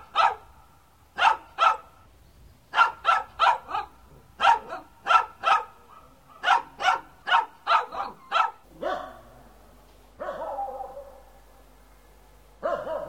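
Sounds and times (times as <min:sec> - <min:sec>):
dog barking: 0:00.0 - 0:00.5, 0:01.2 - 0:01.9, 0:02.7 - 0:09.3, 0:10.2 - 0:11.4, 0:12.6 - 0:13.0.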